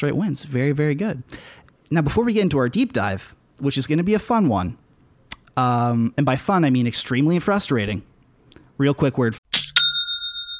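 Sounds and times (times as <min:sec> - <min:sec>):
speech: 0:00.0 - 0:04.8, 0:05.6 - 0:08.1, 0:08.8 - 0:09.4
notification ding for an online store sale: 0:09.6 - 0:10.5.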